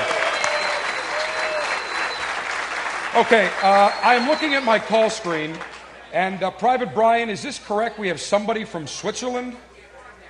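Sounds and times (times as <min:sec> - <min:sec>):
crowd applauding: 0:00.0 - 0:06.0
speech: 0:03.2 - 0:09.7.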